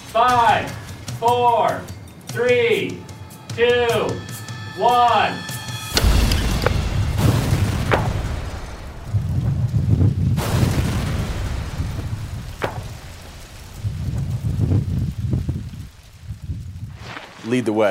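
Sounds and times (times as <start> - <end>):
speech: 0.2 - 5.5, 17.5 - 17.8
reconstructed car bomb exploding: 6.0 - 14.8
deep rolling rumble: 6.0 - 17.8
wind noise: 6.0 - 17.8.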